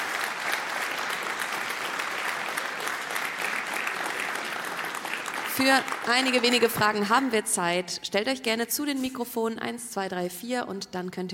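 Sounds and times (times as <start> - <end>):
audience applause: 0.0 - 7.0
speech: 5.6 - 11.3.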